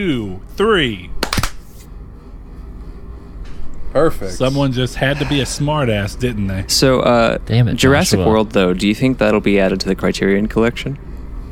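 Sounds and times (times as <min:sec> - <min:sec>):
speech: 0:00.0 - 0:01.2, 0:03.9 - 0:11.1
hand clap for audio sync: 0:01.2 - 0:01.7.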